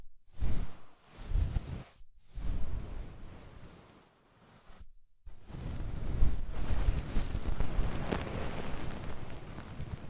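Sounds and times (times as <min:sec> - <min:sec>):
crackly scrapes: 0:00.4 - 0:10.0
dense steady rustling: 0:05.5 - 0:10.0.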